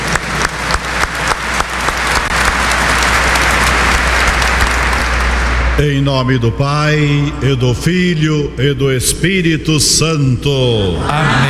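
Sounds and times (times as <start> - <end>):
warm welcoming audience applause: 0.0 - 5.8
speech: 5.8 - 11.4.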